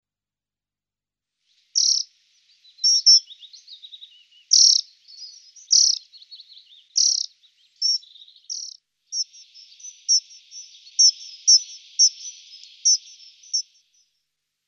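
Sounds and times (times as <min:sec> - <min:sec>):
dunnock warbling: 0:02.8 - 0:13.8.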